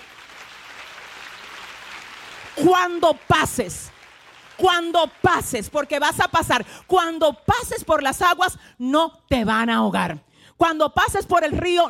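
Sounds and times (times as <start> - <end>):
applause: 0.0 - 7.9
speech: 2.6 - 3.8, 4.6 - 11.8.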